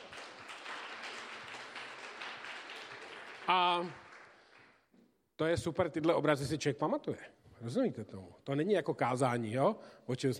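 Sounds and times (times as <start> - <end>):
audience applause: 0.0 - 4.8
speech: 3.5 - 4.1, 5.4 - 10.3.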